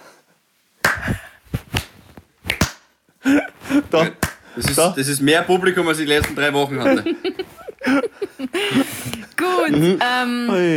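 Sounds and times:
slow clap: 0.8s - 2.9s, 4.2s - 4.9s, 6.2s - 6.4s
speech: 3.3s - 10.7s
laughter: 6.7s - 9.1s.

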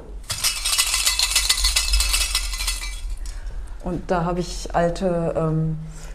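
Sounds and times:
shells clinking on old guitar strings: 0.3s - 3.3s
speech: 3.8s - 6.0s.

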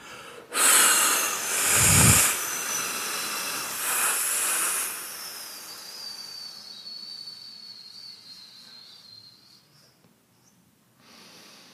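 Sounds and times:
breath pushed out on an F sound in a breathing exercise: 0.0s - 6.5s.

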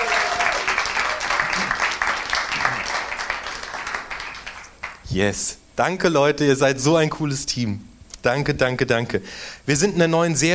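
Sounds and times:
audience clapping loudly: 0.0s - 5.1s
speech: 5.2s - 10.5s.

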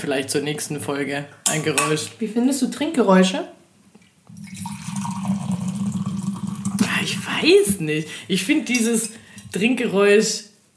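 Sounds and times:
speech: 0.0s - 3.6s, 7.1s - 10.5s
wine pouring from a thermos flask: 4.3s - 7.3s.

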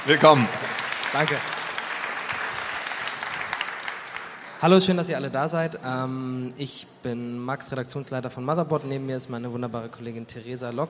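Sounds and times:
speech: 0.0s - 1.5s, 4.6s - 10.8s
audience applause: 0.0s - 4.8s.

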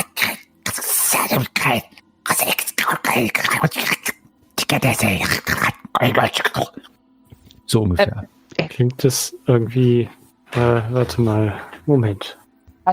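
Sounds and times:
person imitating hissing, whispery voices: 0.0s - 6.9s
speech: 1.3s - 2.5s, 3.2s - 3.9s, 4.7s - 6.9s, 7.7s - 12.9s.

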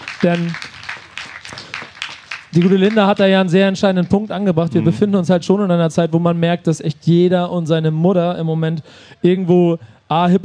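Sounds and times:
applause: 0.0s - 4.2s
speech: 0.2s - 0.6s, 2.5s - 10.4s.

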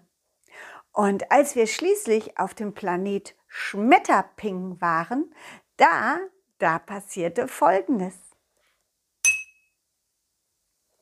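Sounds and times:
speech: 1.0s - 8.2s
high-pitched metallic ping: 9.2s - 9.7s.

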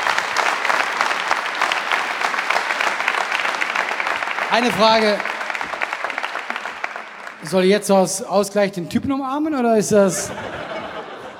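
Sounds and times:
audience applause: 0.0s - 7.9s
speech: 4.5s - 5.3s, 7.4s - 10.6s
laughter: 9.9s - 11.3s.

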